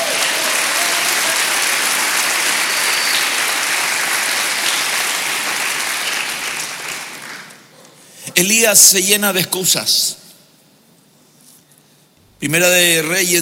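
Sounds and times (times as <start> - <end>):
audience applause: 0.0 - 7.7
speech: 8.4 - 10.2, 12.4 - 13.4.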